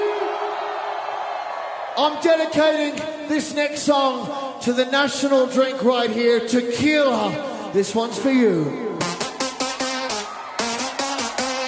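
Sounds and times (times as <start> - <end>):
festival crowd screaming on cue: 0.0 - 2.2, 9.0 - 11.6
speech: 2.0 - 8.9.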